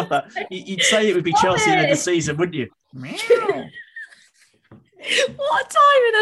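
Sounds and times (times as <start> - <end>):
speech: 0.1 - 3.8, 5.0 - 6.1
cat meowing: 2.9 - 3.7.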